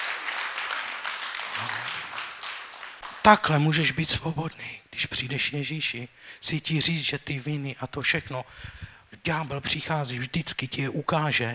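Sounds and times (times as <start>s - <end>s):
applause: 0.0s - 3.6s
speech: 3.3s - 11.5s.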